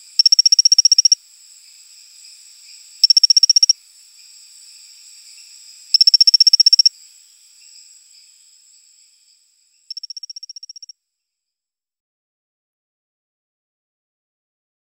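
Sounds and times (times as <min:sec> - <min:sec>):
Colostethus baebatrachus calling: 0:00.2 - 0:01.2, 0:03.0 - 0:03.8, 0:05.9 - 0:06.9, 0:09.9 - 0:10.9.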